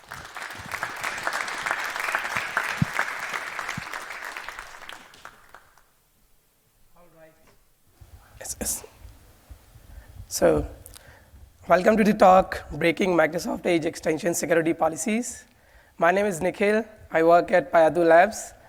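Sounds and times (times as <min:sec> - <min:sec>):
audience applause: 0:00.0 - 0:05.9
speech: 0:08.6 - 0:08.9, 0:10.4 - 0:10.8, 0:11.7 - 0:18.6.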